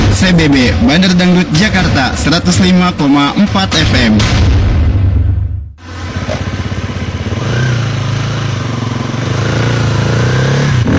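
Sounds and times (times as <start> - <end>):
speech: 0.2 - 4.5
motorcycle engine running: 5.8 - 10.9.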